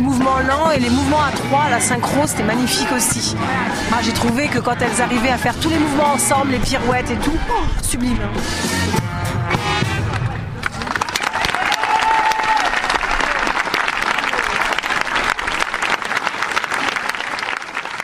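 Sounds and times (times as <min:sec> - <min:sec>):
speech: 0:00.2 - 0:09.7
sustained applause from outdoor audience on the place de la mairie de Parthenay: 0:10.0 - 0:18.0.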